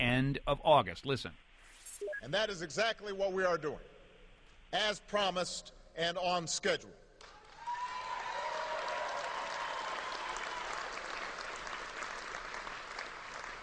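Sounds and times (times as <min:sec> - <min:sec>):
speech: 0:00.1 - 0:01.5, 0:02.2 - 0:03.9, 0:04.7 - 0:07.0
disabled American veterans cheering: 0:07.3 - 0:13.6.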